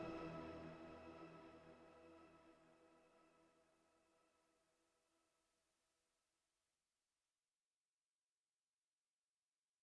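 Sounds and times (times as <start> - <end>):
aftermath ambient music: 0.0 - 4.2.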